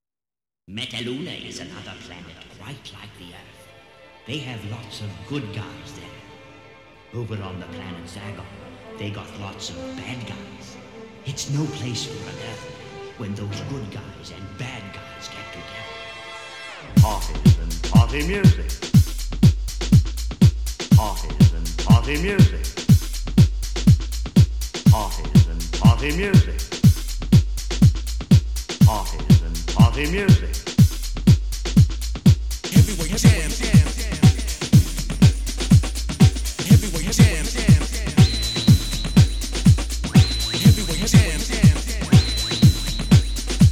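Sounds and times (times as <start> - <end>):
808 bass: 17.0 - 43.6.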